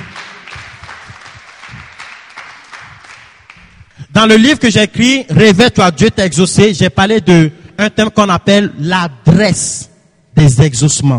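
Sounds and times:
church congregation loudly acclaiming Jesus with applause: 0:00.0 - 0:04.0
speech: 0:04.2 - 0:11.1.

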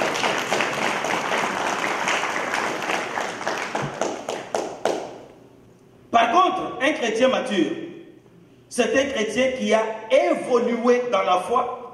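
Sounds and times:
audience applause: 0:00.0 - 0:05.1
speech: 0:07.0 - 0:07.8, 0:08.8 - 0:11.8.

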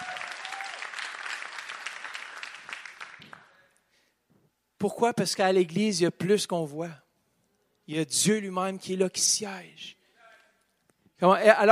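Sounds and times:
audience applause: 0:00.0 - 0:03.6
speech: 0:04.8 - 0:07.0, 0:07.9 - 0:10.0, 0:11.2 - 0:11.7.

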